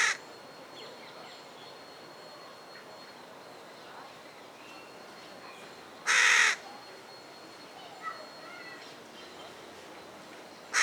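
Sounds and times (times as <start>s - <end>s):
Carrion crow cawing, Corvus corone: 0.0s - 0.2s, 6.1s - 6.6s.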